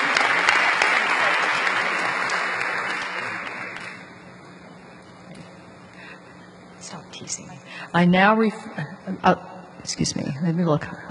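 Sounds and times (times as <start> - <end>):
audience applause at a meeting congratulating a married couple: 0.0 - 4.1
speech: 7.3 - 11.0.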